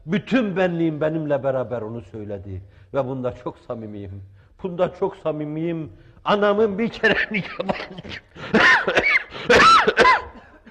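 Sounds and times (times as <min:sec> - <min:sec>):
speech: 0:00.1 - 0:10.2
quiet breathing: 0:02.6 - 0:03.0, 0:05.9 - 0:06.3
raspy coughing: 0:07.0 - 0:10.6.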